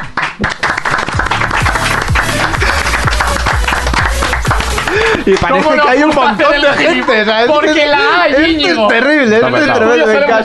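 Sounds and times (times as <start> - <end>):
audience applause: 0.0 - 5.8
speech: 0.4 - 0.6, 5.3 - 10.4
laughter: 1.4 - 8.9.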